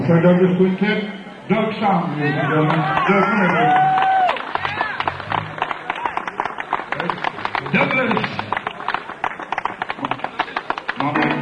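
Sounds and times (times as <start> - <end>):
speech: 0.1 - 4.0
audience applause: 2.6 - 11.4.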